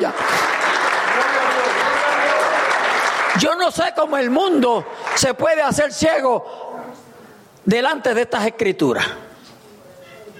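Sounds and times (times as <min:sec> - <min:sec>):
audience applauding: 0:00.0 - 0:05.6
speech: 0:03.4 - 0:06.7, 0:07.6 - 0:09.2.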